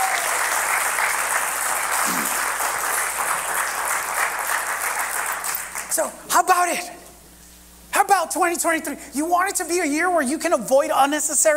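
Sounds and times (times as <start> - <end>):
audience applause: 0.0 - 6.0
speech: 6.0 - 7.0, 8.3 - 11.5.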